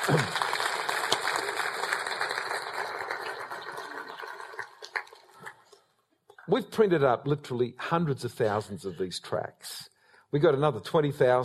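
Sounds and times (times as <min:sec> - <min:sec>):
speech: 0:00.0 - 0:00.4, 0:06.7 - 0:11.4
audience applause: 0:00.0 - 0:05.6.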